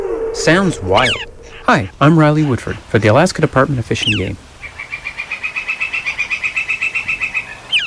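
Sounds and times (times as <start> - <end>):
woodpecker calling to its mate: 0.2 - 2.6, 4.0 - 7.8
speech: 0.4 - 4.5.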